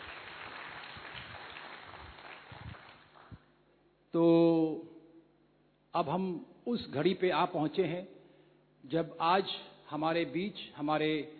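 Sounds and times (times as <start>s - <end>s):
loud applause: 0.0s - 3.4s
speech: 4.1s - 4.5s, 6.0s - 8.2s, 8.8s - 11.3s.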